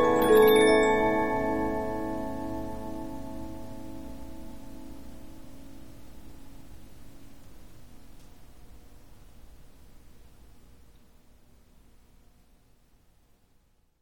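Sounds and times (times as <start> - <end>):
Polyphon 15-inch disc music box playing: 0.0 - 3.1.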